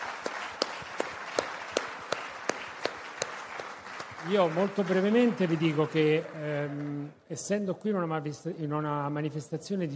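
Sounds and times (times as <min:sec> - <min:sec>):
audience applause: 0:00.0 - 0:07.1
speech: 0:04.2 - 0:09.9.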